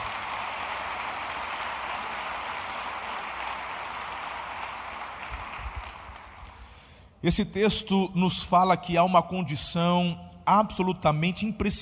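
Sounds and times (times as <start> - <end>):
audience applauding: 0.0 - 6.7
speech: 7.2 - 11.7.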